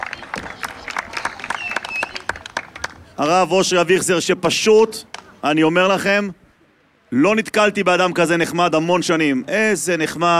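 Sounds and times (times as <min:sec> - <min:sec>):
audience applause: 0:00.0 - 0:03.2
speech: 0:03.2 - 0:06.4, 0:07.1 - 0:10.3.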